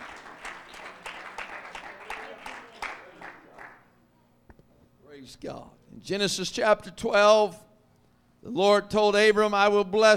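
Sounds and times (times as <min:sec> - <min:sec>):
audience hand clapping: 0:00.0 - 0:03.9
speech: 0:05.3 - 0:07.7, 0:08.4 - 0:10.1.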